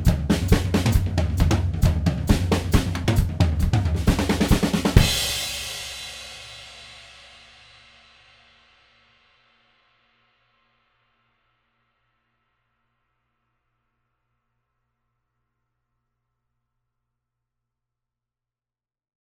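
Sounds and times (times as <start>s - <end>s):
dry drums in a drum room: 0.0s - 6.8s.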